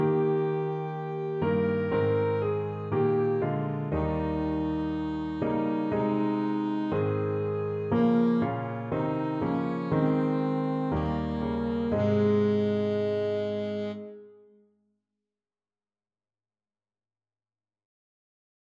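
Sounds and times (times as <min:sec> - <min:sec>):
saxophone: 0:00.0 - 0:14.6.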